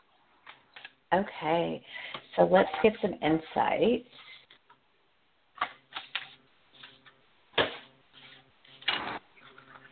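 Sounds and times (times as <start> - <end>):
speech: 1.1 - 4.3
playing cards being shuffled: 5.6 - 9.9.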